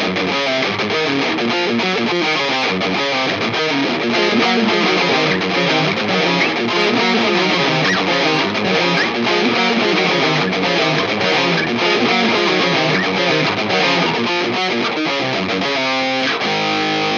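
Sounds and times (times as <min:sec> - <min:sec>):
metal music: 0:00.2 - 0:17.1.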